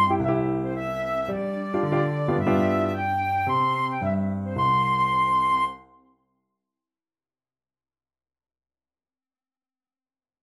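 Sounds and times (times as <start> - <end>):
piano: 0.0 - 6.0
flute: 0.0 - 6.2.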